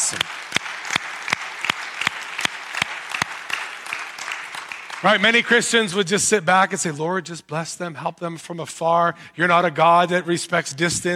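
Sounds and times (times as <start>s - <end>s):
audience applause: 0.0s - 5.8s
speech: 0.1s - 0.4s, 5.0s - 11.1s.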